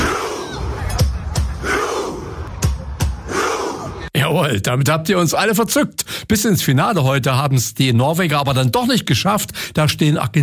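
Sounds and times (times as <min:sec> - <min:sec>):
stadium crowd deep shouted grunts: 0:00.0 - 0:04.1
speech: 0:04.5 - 0:10.4.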